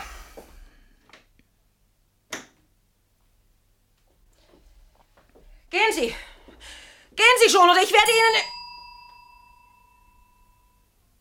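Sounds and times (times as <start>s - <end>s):
speech: 5.7s - 6.2s, 7.5s - 8.6s
bell ringing: 8.0s - 10.9s.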